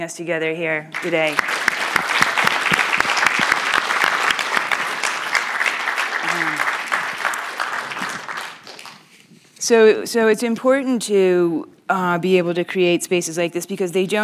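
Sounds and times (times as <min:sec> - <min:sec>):
speech: 0:00.0 - 0:02.1, 0:09.7 - 0:14.2
room full of people applauding: 0:01.0 - 0:09.1.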